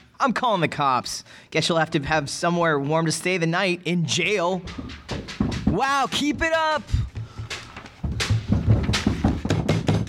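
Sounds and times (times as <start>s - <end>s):
speech: 0.2s - 7.0s
banging on a door: 4.6s - 10.0s.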